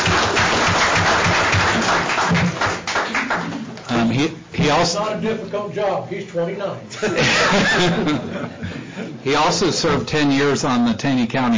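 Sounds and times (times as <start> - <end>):
round of applause: 0.0 - 3.9
speech: 4.9 - 11.5
laughter: 6.9 - 10.0.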